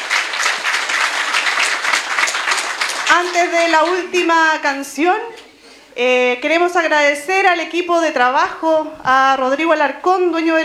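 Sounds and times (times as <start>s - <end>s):
audience applause: 0.0s - 4.5s
speech: 3.1s - 5.4s, 6.0s - 10.6s.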